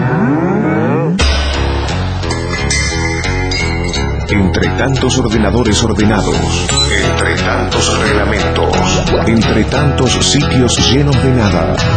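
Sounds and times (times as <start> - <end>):
cow mooing: 0.0 - 1.2
loud rhythmic music with a thumping beat: 1.2 - 11.9
speech: 4.3 - 11.9.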